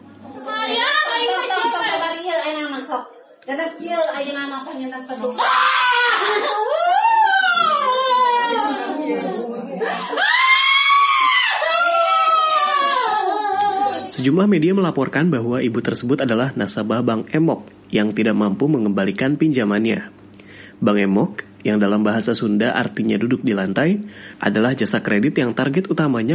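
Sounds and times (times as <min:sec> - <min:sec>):
loud agitated speech: 0:00.3 - 0:14.2
speech: 0:03.5 - 0:06.8, 0:14.2 - 0:20.2, 0:20.8 - 0:26.3
woman crying hysterically during an argument over an unpaid debt: 0:05.5 - 0:14.2.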